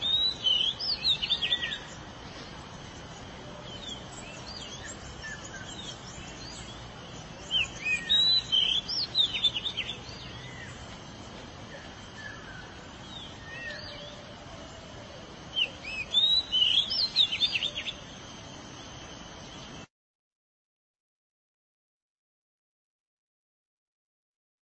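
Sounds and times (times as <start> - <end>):
Oriental magpie-robin singing: 0.0 - 19.9
steady background hiss: 0.0 - 19.9.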